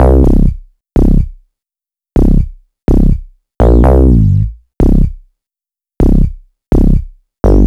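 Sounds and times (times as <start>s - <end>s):
house bass loop: 0.0s - 1.3s, 2.2s - 5.2s, 6.0s - 7.6s.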